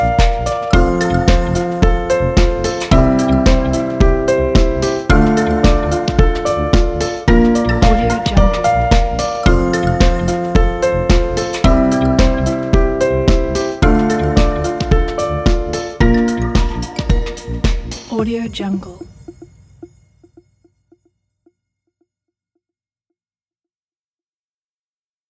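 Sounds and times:
uplifting corporate music: 0.0s - 19.8s.

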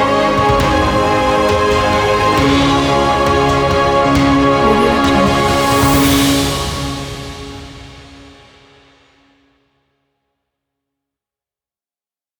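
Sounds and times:
ceremonial music: 0.0s - 8.8s.

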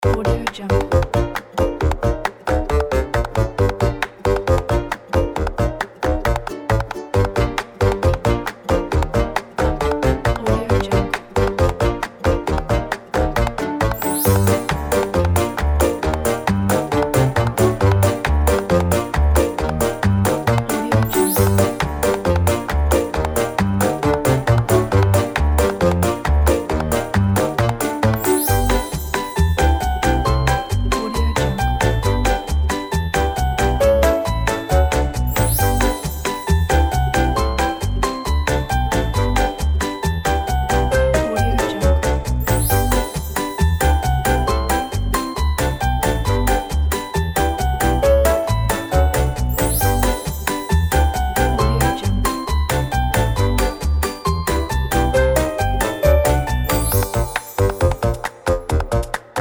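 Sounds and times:
quirky and funny comedy music: 0.0s - 59.3s.

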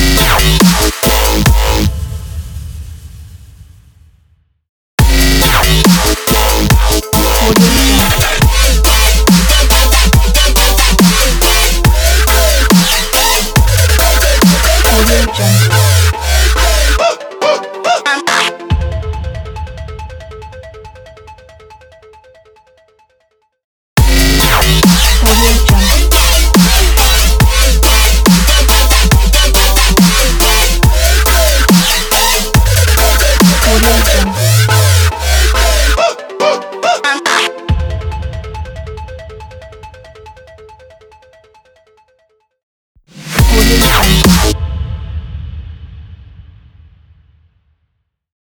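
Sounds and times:
dubstep music: 0.0s - 1.9s, 5.0s - 19.9s, 24.0s - 39.4s, 43.2s - 44.6s.

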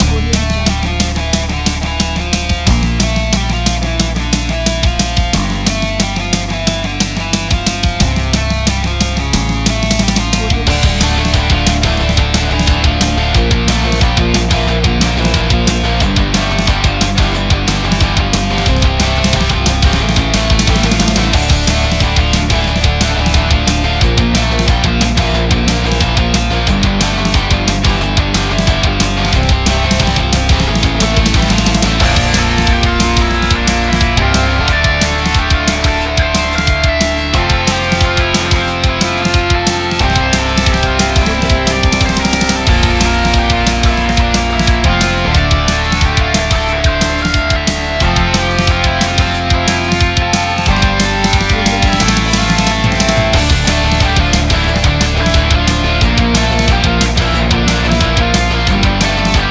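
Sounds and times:
uptempo hard rock: 0.0s - 59.4s.

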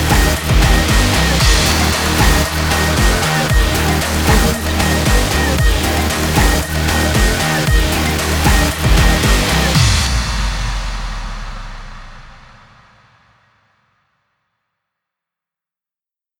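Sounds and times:
action dubstep music: 0.0s - 10.6s.

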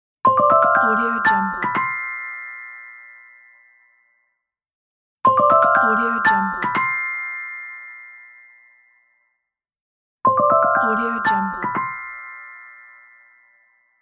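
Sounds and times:
magical bells: 0.4s - 4.0s, 5.3s - 9.1s, 10.4s - 14.0s.

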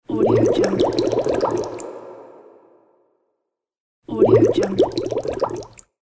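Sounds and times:
sudden water bubbles: 0.0s - 2.7s, 4.1s - 5.9s.

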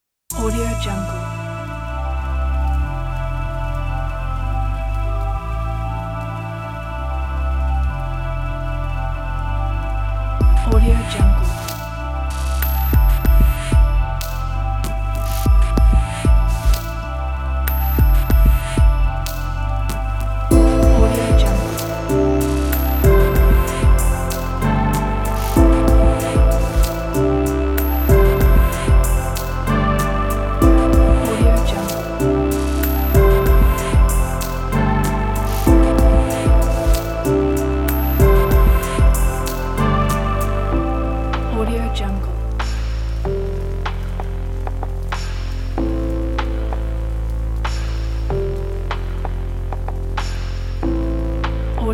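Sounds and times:
ambient background meditation music: 0.3s - 51.8s.

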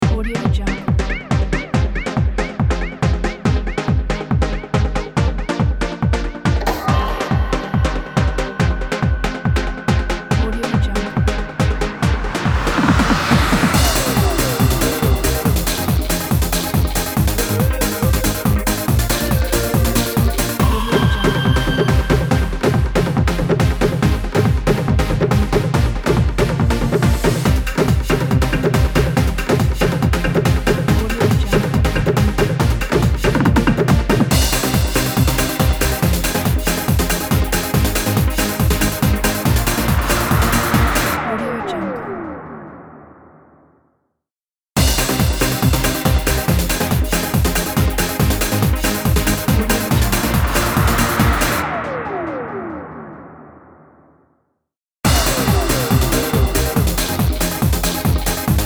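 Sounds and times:
1990s trance club music: 0.0s - 43.4s, 44.8s - 53.9s, 55.0s - 58.6s.

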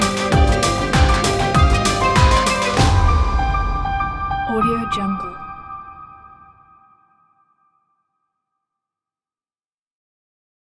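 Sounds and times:
suspense music: 0.0s - 6.6s.

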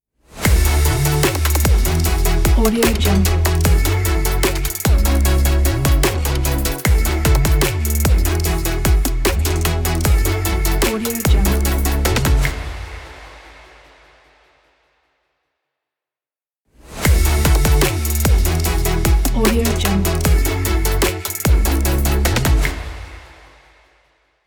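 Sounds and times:
motivating future bass logo music: 0.4s - 12.5s, 17.0s - 22.7s.

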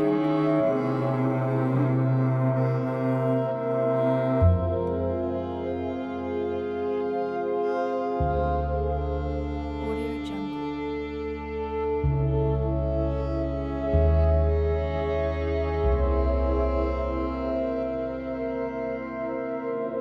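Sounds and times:
tragic orchestral soundscape: 0.0s - 19.9s.

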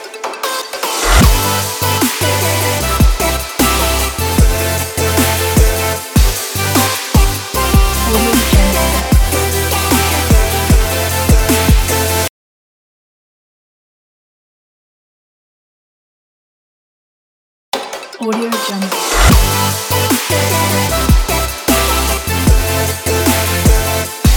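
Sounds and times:
joyful future bass music: 0.0s - 12.3s, 17.8s - 24.3s.

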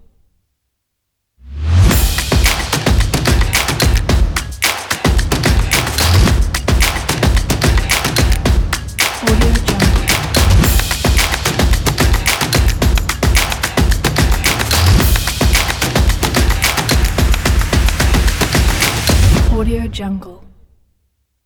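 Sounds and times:
drums: 1.8s - 19.8s.

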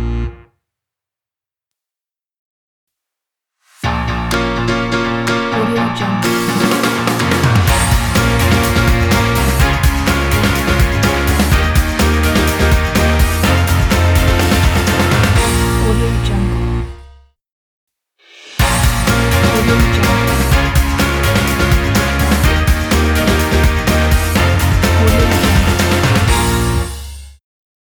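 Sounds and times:
energetic pop promo music: 3.9s - 16.9s, 18.6s - 27.0s.

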